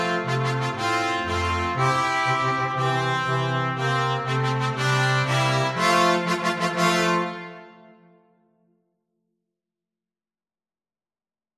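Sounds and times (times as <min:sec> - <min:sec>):
brass triplet tune in B flat: 0:00.0 - 0:08.4.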